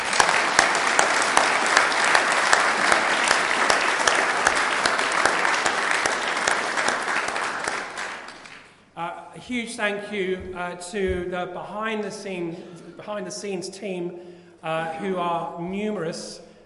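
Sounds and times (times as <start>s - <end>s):
large audience applause: 0.0s - 8.7s
speech: 9.5s - 16.5s.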